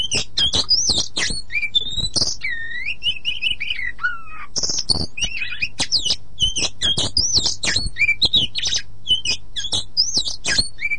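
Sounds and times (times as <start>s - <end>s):
Oriental magpie-robin song of whistled notes, slurs and sharp chips: 0.0s - 10.9s.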